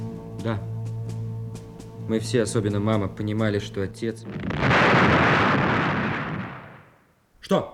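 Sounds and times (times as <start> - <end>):
speech: 0.5 - 0.7, 2.1 - 5.1, 7.5 - 7.7
explosion at a military post near the trenches: 4.2 - 7.0.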